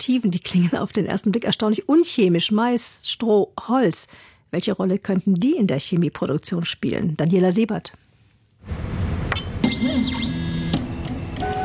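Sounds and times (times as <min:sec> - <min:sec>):
speech: 0:00.0 - 0:08.0
3D printer mechanical hum: 0:08.6 - 0:11.6
3D printer stepper motors whining: 0:09.6 - 0:11.6.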